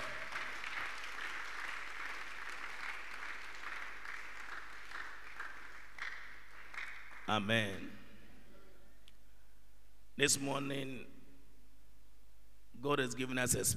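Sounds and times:
audience clapping hands for Jesus: 0:00.0 - 0:07.4
speech: 0:07.3 - 0:08.0, 0:10.2 - 0:11.2, 0:12.8 - 0:13.7.

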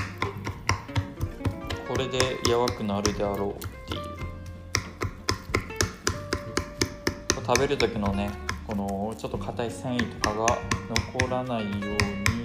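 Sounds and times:
fork jabbing into cut meat on a plate or board: 0:00.0 - 0:08.9
speech: 0:02.0 - 0:04.2, 0:07.5 - 0:12.4.

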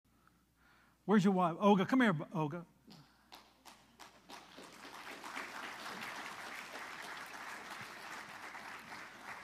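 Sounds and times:
speech: 0:01.1 - 0:02.7
audience applause: 0:03.4 - 0:09.4.

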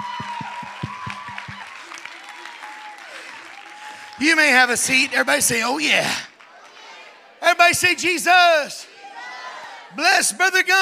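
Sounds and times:
audience hand clapping: 0:00.0 - 0:06.7
speech: 0:04.2 - 0:06.3, 0:07.7 - 0:08.8, 0:10.0 - 0:10.8.

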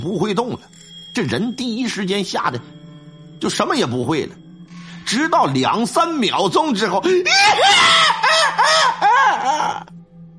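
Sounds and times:
speech: 0:00.0 - 0:02.8, 0:03.4 - 0:04.4, 0:05.1 - 0:08.0
voice imitating a woman screaming in fright: 0:07.2 - 0:09.9.

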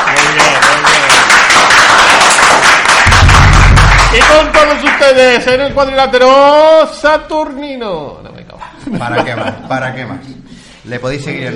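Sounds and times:
applause: 0:00.0 - 0:05.4
speech: 0:04.2 - 0:11.5.

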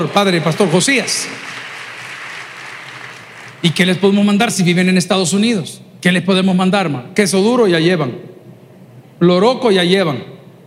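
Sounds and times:
speech: 0:00.0 - 0:01.5, 0:03.6 - 0:08.3, 0:09.2 - 0:10.3
audience applause: 0:00.0 - 0:04.2.

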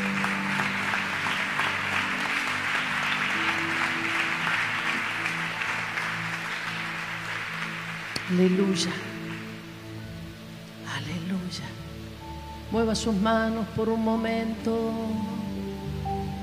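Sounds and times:
audience applause: 0:00.0 - 0:10.0
sustained organ or keyboard tones: 0:00.0 - 0:12.9
speech: 0:08.3 - 0:09.1, 0:12.7 - 0:15.4.

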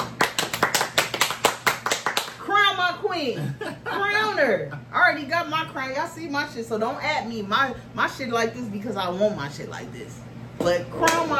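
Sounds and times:
round of applause, hand clapping: 0:00.0 - 0:02.4
speech: 0:03.1 - 0:11.3.

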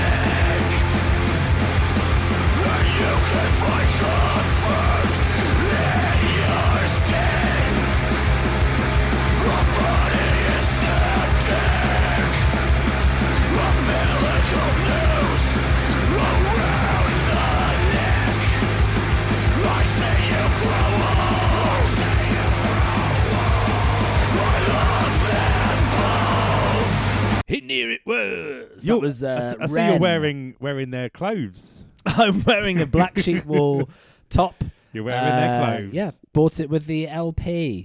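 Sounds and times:
deep droning bass: 0:00.0 - 0:27.4
steady pounding drum hits: 0:00.0 - 0:27.4
thick distorted guitars: 0:00.0 - 0:27.5, 0:28.8 - 0:30.3, 0:35.2 - 0:36.0
speech: 0:28.8 - 0:37.8
laughter: 0:29.4 - 0:30.2, 0:32.0 - 0:34.0, 0:35.2 - 0:36.1.

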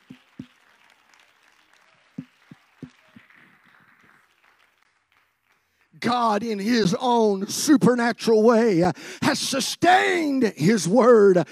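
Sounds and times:
group clapping hands: 0:00.0 - 0:06.2
speech: 0:06.0 - 0:11.4.

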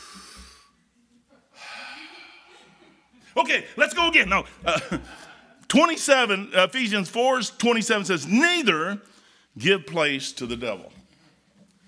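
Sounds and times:
preacher taking a deep breath mid-sermon: 0:00.0 - 0:00.8, 0:01.5 - 0:03.3, 0:09.1 - 0:09.6
laughter: 0:01.4 - 0:05.4
speech: 0:03.4 - 0:11.0.

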